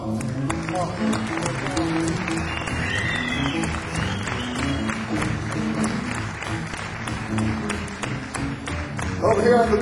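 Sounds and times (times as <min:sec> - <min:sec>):
audience applause: 0:00.2 - 0:09.8
speech: 0:00.8 - 0:02.3, 0:09.4 - 0:09.8.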